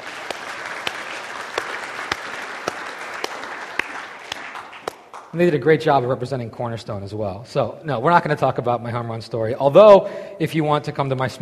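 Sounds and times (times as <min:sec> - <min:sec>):
audience round of applause: 0:00.0 - 0:05.4
speech: 0:05.3 - 0:11.4.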